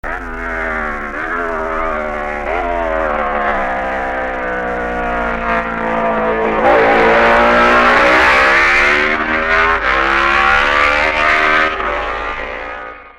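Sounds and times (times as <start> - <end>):
Jawa motorcycle: 0.0 - 13.1.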